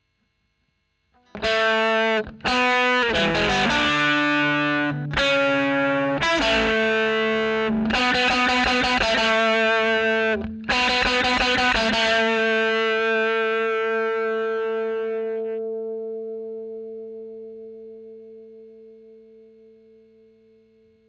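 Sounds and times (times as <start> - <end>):
overdriven electric guitar recorded with a Royer microphone: 1.2 - 21.0.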